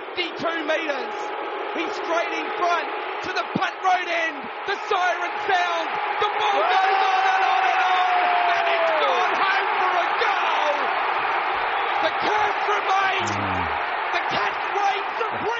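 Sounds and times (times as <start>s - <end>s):
speech: 0.2s - 7.2s
stadium crowd roaring at football match: 1.7s - 15.5s.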